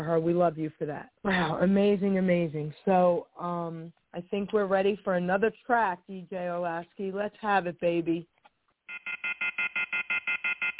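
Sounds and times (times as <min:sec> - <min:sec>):
speech: 0:00.0 - 0:08.4
telephone left off the hook beeping: 0:08.9 - 0:10.7.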